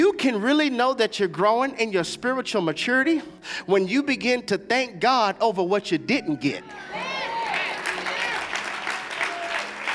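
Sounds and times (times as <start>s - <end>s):
speech: 0.2s - 7.2s
sparse audience clapping: 7.2s - 9.9s.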